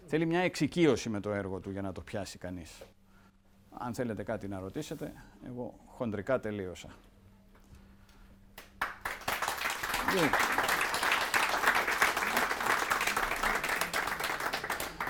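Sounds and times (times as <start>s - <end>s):
speech: 0.1s - 3.0s, 3.8s - 7.1s, 10.1s - 10.6s
room full of people applauding: 8.8s - 15.0s.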